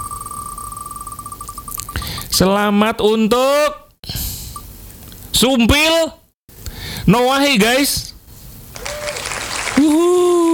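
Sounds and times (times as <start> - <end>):
speech: 2.3 - 3.8, 5.4 - 6.2, 7.1 - 8.1, 9.8 - 10.4
applause: 8.7 - 10.5.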